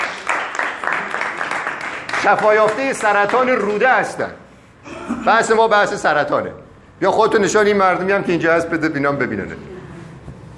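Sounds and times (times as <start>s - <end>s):
audience applause: 0.0s - 3.9s
speech: 2.2s - 9.7s.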